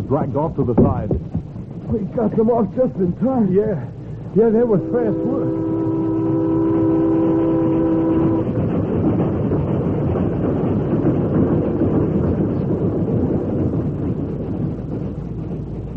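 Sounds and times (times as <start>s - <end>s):
train rushing by: 0.0s - 15.9s
speech: 0.1s - 5.7s
train horn blaring: 4.4s - 8.7s.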